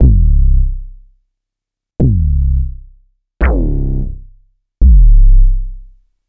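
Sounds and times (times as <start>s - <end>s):
compressed and equalized kick drum: 2.0s - 2.6s, 3.4s - 3.9s, 4.8s - 5.5s.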